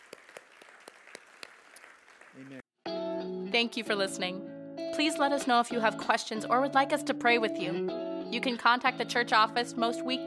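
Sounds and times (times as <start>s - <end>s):
audience applause: 0.0s - 2.6s
speech: 2.4s - 2.6s, 3.6s - 10.2s.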